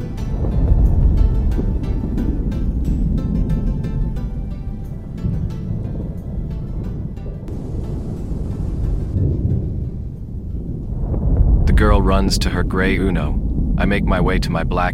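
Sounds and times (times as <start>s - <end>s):
rising wind: 0.0s - 14.9s
thunder: 0.3s - 3.9s, 7.4s - 14.2s
speech: 12.0s - 14.9s.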